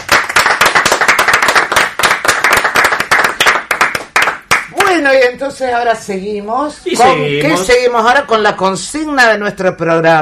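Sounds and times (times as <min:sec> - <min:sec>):
applause: 0:00.0 - 0:05.0
speech: 0:05.0 - 0:10.2.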